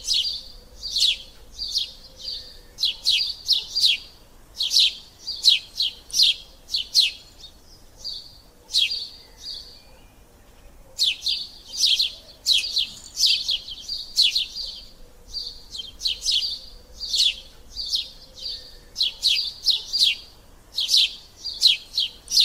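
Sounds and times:
myna chirping: 0.0 - 22.4.

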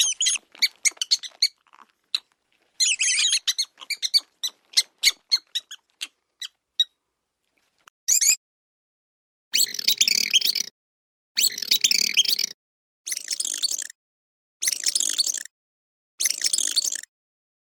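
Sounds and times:
rat sound: 0.0 - 6.9, 9.6 - 10.7, 11.4 - 13.9, 16.2 - 17.1.

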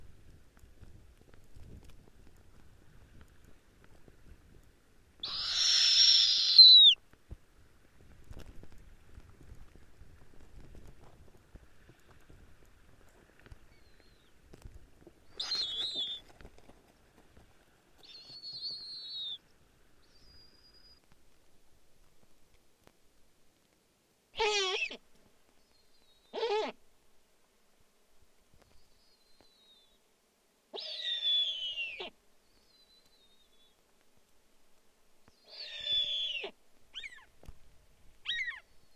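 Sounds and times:
snowy owl calling: 5.2 - 7.0, 15.3 - 16.2, 18.0 - 19.4, 24.4 - 25.0, 26.2 - 26.8, 30.7 - 32.2, 35.3 - 37.3, 38.2 - 38.7.

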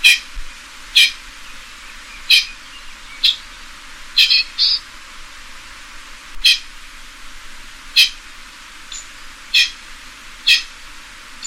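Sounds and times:
pheasant harsh calls: 0.0 - 4.9, 6.4 - 6.7, 7.9 - 8.2, 8.9 - 9.8, 10.4 - 10.8.

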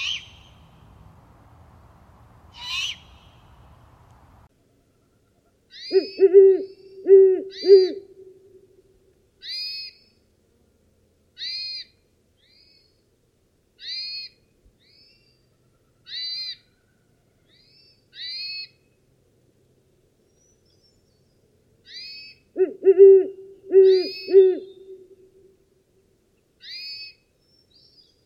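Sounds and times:
Great Horned Owl hooting: 2.5 - 3.5, 5.7 - 8.7, 21.9 - 25.5.

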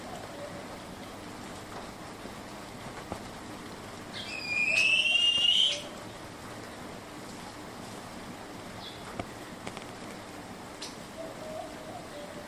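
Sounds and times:
bird whistling a long note: 4.2 - 5.9.

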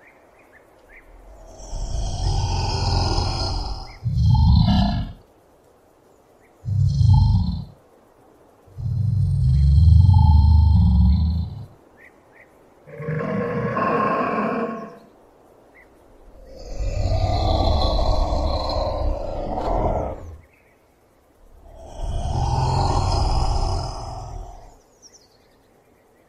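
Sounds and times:
Komodo dragon: 1.1 - 5.2, 6.6 - 7.8, 8.7 - 11.8, 12.9 - 15.1, 16.2 - 20.4, 21.5 - 24.8.

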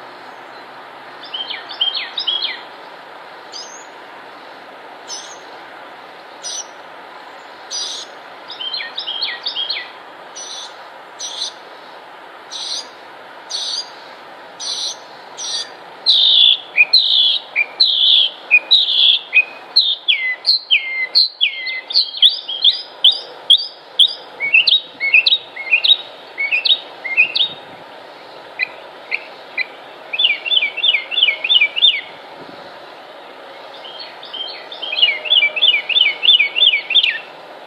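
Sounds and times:
bird singing whistled notes: 1.2 - 2.6, 7.7 - 11.6, 14.6 - 27.6, 28.6 - 32.1, 33.7 - 37.3.

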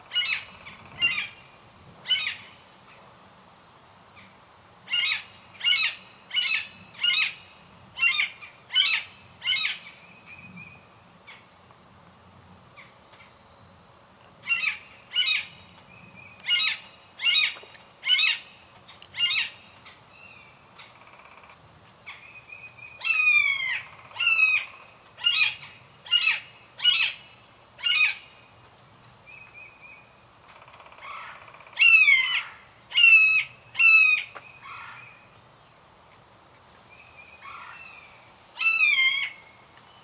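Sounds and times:
blue jay call: 0.0 - 2.6, 4.9 - 10.0, 14.4 - 28.4, 29.3 - 35.3, 37.1 - 40.0.

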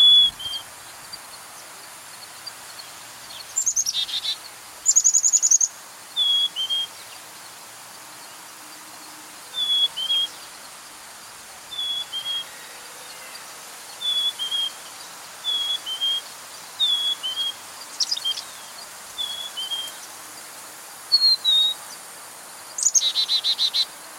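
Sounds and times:
bird song with whistles and trill: 0.0 - 0.7, 3.3 - 7.2, 9.5 - 10.4, 11.7 - 12.7, 13.9 - 20.1, 21.1 - 21.9, 22.8 - 23.9
soft hiss: 0.0 - 24.1.

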